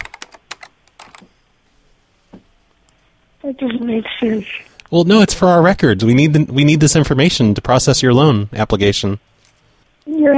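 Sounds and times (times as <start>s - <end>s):
typing on a computer keyboard in a loan office: 0.0s - 1.3s
speech: 3.5s - 9.3s, 10.1s - 10.3s.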